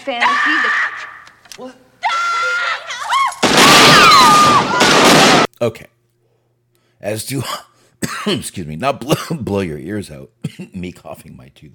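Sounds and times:
speech: 0.0 - 1.8, 5.6 - 5.9, 7.0 - 11.7
gunfire: 3.4 - 5.5.

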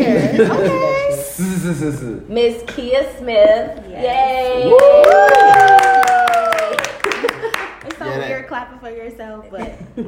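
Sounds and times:
speech: 0.4 - 5.8, 8.5 - 10.0
clapping: 4.7 - 8.1.

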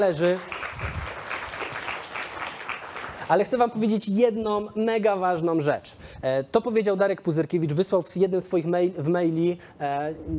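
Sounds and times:
speech: 0.0 - 1.0, 3.3 - 10.3
audience applause: 0.0 - 3.6.

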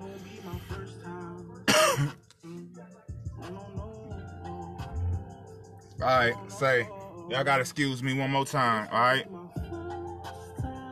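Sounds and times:
man coughing and clearing his throat as if choking: 1.6 - 2.3
speech: 2.0 - 2.2, 6.0 - 9.4.

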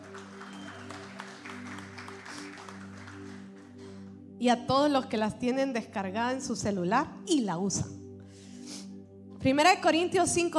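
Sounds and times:
audience applauding: 0.0 - 4.1
low musical drone: 0.0 - 9.4
speech: 4.4 - 8.0, 9.4 - 10.5.

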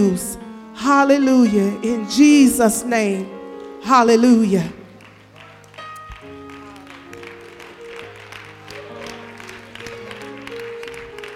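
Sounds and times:
speech: 0.0 - 4.8
audience clapping hands: 4.8 - 11.3.

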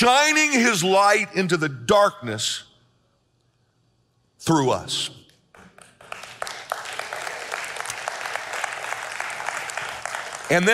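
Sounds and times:
speech: 0.0 - 2.7, 4.4 - 5.2, 10.5 - 10.7
audience clapping: 5.5 - 10.7.

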